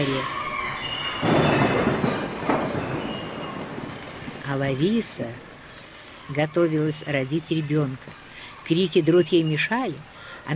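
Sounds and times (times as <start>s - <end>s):
speech: 0.0s - 0.4s, 4.5s - 5.5s, 6.3s - 10.5s
rain hiss: 0.0s - 10.5s
deep rolling thunder: 0.8s - 5.7s.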